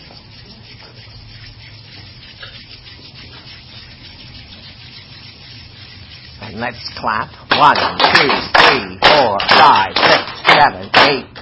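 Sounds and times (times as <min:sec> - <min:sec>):
hands rubbing together: 0:00.0 - 0:07.0
speech: 0:06.5 - 0:11.3.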